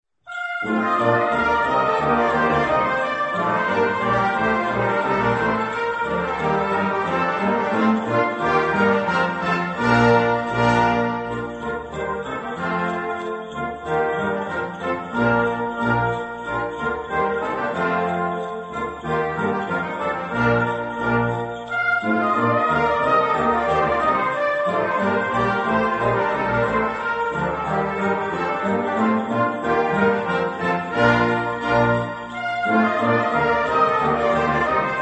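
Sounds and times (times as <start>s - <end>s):
Christmas carols: 0.2s - 35.0s.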